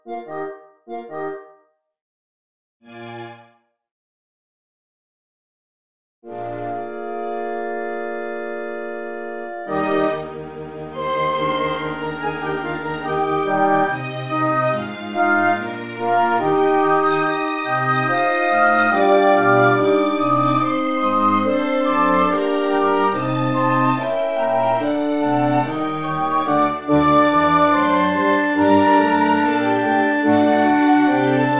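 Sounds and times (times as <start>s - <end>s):
piano concerto: 6.4s - 31.5s.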